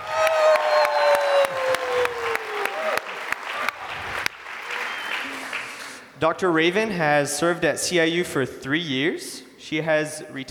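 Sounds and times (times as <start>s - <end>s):
high sliding whoop: 0.0s - 4.0s
crowd clapping: 0.0s - 6.1s
speech: 6.2s - 10.4s.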